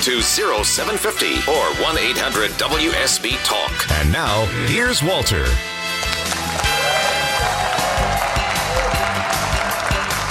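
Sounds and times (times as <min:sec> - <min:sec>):
speech: 0:00.0 - 0:05.7
sustained musical backing: 0:00.0 - 0:10.2
live audience clapping: 0:05.7 - 0:10.2.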